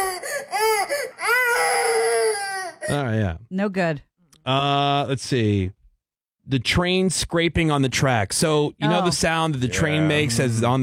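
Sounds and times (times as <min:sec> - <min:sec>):
baby crying: 0:00.0 - 0:03.0
speech: 0:02.9 - 0:05.8, 0:06.5 - 0:10.8.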